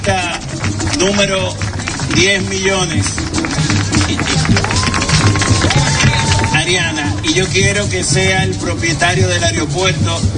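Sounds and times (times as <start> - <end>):
crowd applause: 0.0 - 8.0
speech: 1.0 - 5.0, 6.6 - 10.3.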